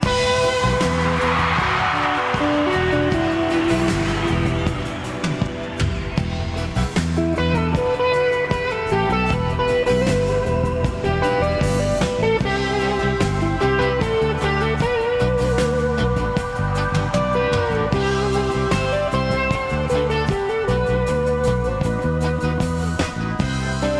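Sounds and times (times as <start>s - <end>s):
Synclavier synthesizer: 0.0s - 23.9s.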